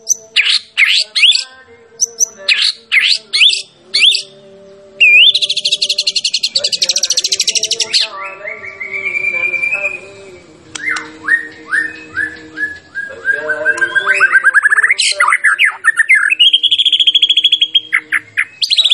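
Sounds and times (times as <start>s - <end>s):
white-rumped shama song: 0.0s - 4.3s, 5.0s - 6.7s, 7.5s - 10.2s, 10.8s - 18.9s.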